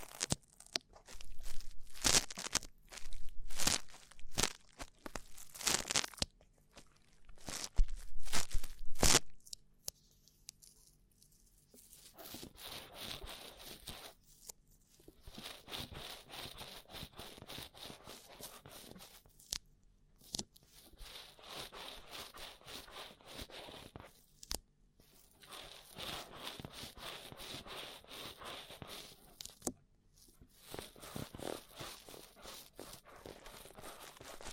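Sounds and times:
rough ear cleaning crackling and scraping: 0.0 - 9.6, 11.5 - 19.6, 20.2 - 34.5.

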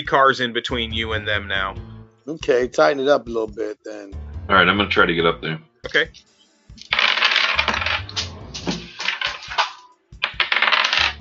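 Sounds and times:
speech: 0.0 - 6.9
dice clattering over a hard surface: 6.8 - 11.1.

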